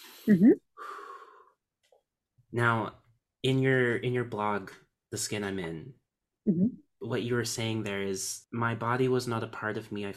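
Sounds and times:
person taking a deep breath: 0.0s - 1.6s
speech: 0.2s - 0.7s, 2.5s - 10.1s.

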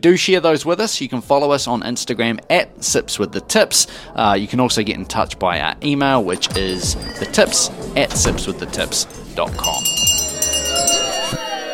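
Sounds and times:
speech: 0.0s - 10.2s
murmur of indistinct voices: 2.1s - 11.7s
last call bell ringing: 6.4s - 11.7s
clinking: 6.5s - 11.5s.

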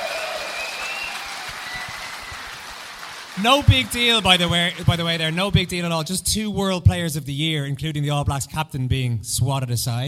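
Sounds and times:
theatre audience applause: 0.0s - 5.8s
speech: 3.4s - 10.0s.

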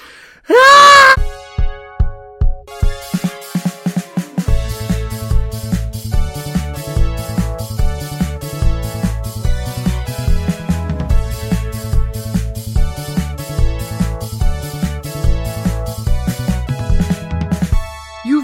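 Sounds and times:
loud shrill human scream: 0.5s - 1.2s
rhythmic plucked melody building into upbeat music track: 1.2s - 18.4s.

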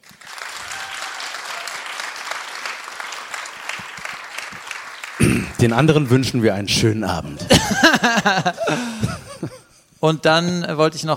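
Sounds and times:
live audience clapping: 0.0s - 6.4s
speech: 5.4s - 9.2s, 10.0s - 11.1s
laughter: 7.4s - 9.7s.

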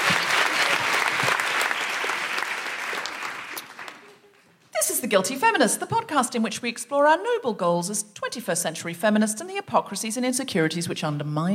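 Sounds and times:
crowd applauding: 0.0s - 4.5s
speech: 5.1s - 11.5s.

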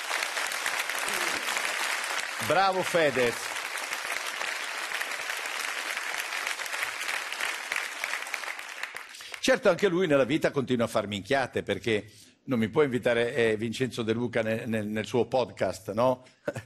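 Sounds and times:
applause: 0.0s - 9.8s
speech: 2.4s - 3.6s, 9.5s - 16.6s.

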